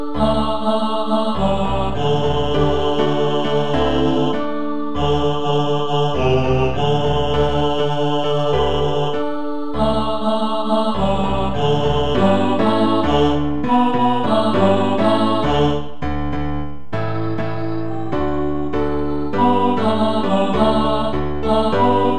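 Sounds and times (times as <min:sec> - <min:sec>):
choir singing: 0:00.0 - 0:22.1
bass: 0:01.4 - 0:04.4, 0:06.2 - 0:09.2, 0:11.0 - 0:22.1.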